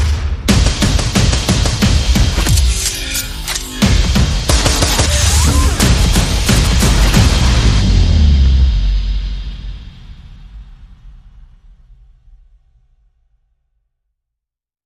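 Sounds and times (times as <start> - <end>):
guns: 0.0 - 8.2
percussion effects: 0.0 - 12.1.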